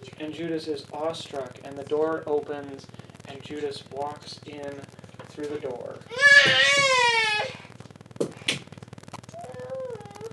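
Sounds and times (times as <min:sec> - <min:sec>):
speech: 0:00.2 - 0:07.6
small child crying: 0:06.1 - 0:07.6, 0:09.3 - 0:10.3.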